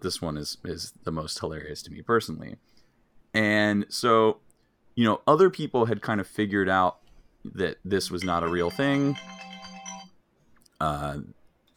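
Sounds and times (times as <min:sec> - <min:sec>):
speech: 0:00.0 - 0:02.8, 0:03.4 - 0:04.4, 0:05.0 - 0:09.5, 0:10.8 - 0:11.4
small electronic alarm: 0:08.2 - 0:10.1.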